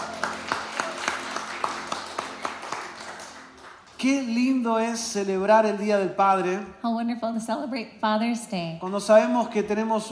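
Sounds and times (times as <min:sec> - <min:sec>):
applause: 0:00.0 - 0:04.5
speech: 0:04.0 - 0:10.1.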